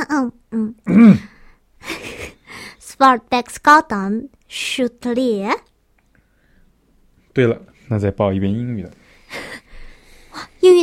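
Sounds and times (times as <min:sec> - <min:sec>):
speech: 0:00.2 - 0:01.3, 0:03.0 - 0:05.7, 0:07.4 - 0:09.6, 0:10.4 - 0:10.8
person clearing throat: 0:00.8 - 0:01.4.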